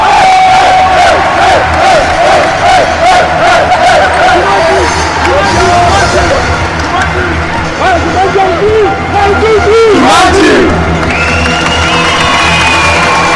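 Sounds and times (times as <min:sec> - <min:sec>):
overlapping chanting voices: 0:00.0 - 0:07.9, 0:09.9 - 0:10.8
fans cheering basketball team's on-court celebration: 0:00.0 - 0:13.3.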